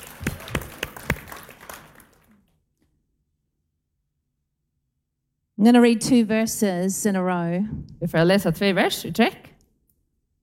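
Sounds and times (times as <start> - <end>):
church congregation clapping: 0.0 - 2.5
speech: 5.6 - 9.5.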